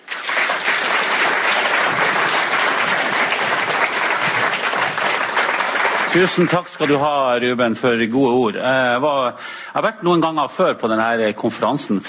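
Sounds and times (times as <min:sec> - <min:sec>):
audience clapping: 0:00.0 - 0:07.3
speech: 0:06.1 - 0:12.0.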